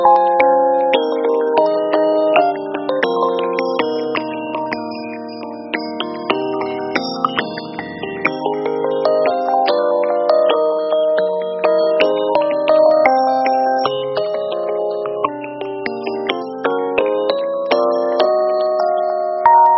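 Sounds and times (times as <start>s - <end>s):
waveform-edited electric piano tone with a dull sound: 0.0s - 19.7s.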